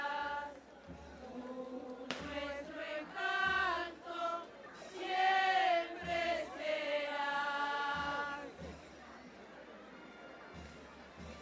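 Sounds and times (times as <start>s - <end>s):
women singers singing in a religious procession: 0.0s - 8.8s.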